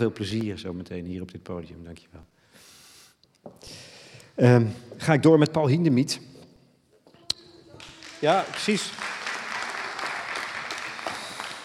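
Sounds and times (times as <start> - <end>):
speech: 0.0 - 2.4, 3.4 - 6.3, 8.2 - 9.0
audience applause for two musicians coming onto a concert stage: 7.8 - 11.6.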